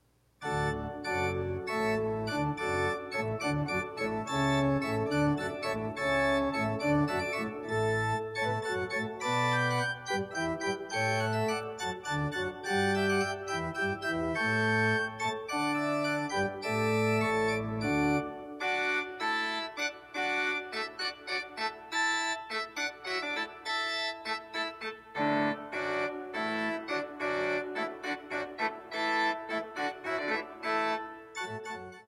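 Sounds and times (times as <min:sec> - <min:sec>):
hornpipe tune: 0:00.4 - 0:32.0.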